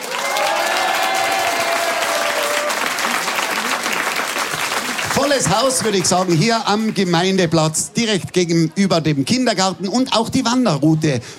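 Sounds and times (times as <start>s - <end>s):
audience applause: 0.0s - 7.4s
speech: 5.3s - 11.3s.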